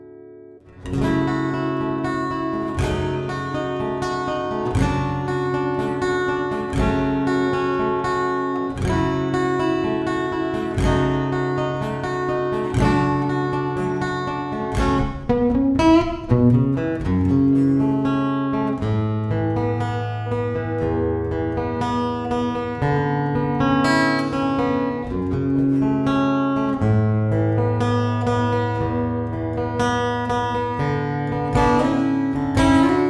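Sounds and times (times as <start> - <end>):
acoustic guitar: 0.0 - 33.0.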